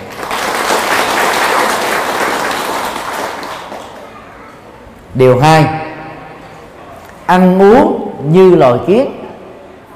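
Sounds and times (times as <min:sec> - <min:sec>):
audience applause: 0:00.0 - 0:04.0
speech: 0:05.2 - 0:05.8, 0:07.3 - 0:09.2.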